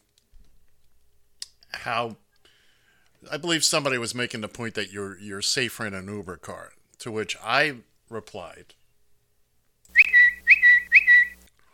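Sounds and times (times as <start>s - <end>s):
speech: 1.8s - 2.2s, 3.2s - 8.8s
person whistling an imitation of a bird tweeting: 9.9s - 11.4s.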